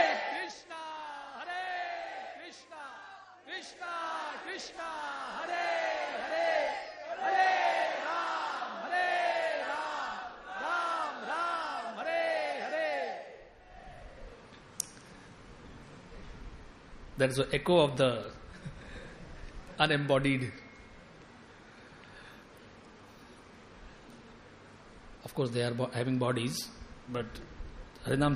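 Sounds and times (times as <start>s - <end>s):
crowd loudly chanting a mantra: 0.0s - 14.2s
speech: 4.6s - 5.0s, 17.2s - 18.4s, 19.8s - 20.6s, 25.4s - 28.3s.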